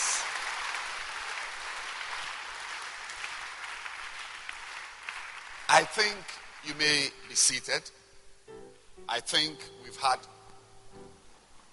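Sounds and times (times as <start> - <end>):
audience clapping hands: 0.0 - 7.9
speech: 5.7 - 8.0, 9.1 - 10.3.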